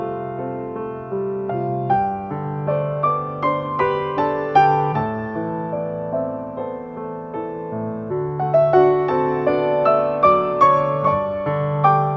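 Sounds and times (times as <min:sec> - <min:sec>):
piano piece: 0:00.0 - 0:12.1.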